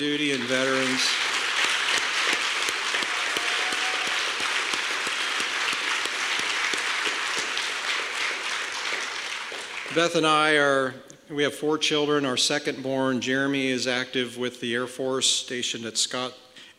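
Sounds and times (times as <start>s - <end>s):
speech: 0.0s - 1.3s, 10.0s - 16.4s
audience applause: 0.0s - 10.2s.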